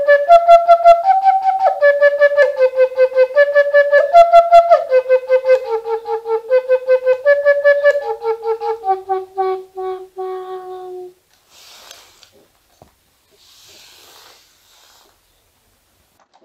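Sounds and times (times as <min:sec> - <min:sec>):
flute: 0:00.0 - 0:11.2.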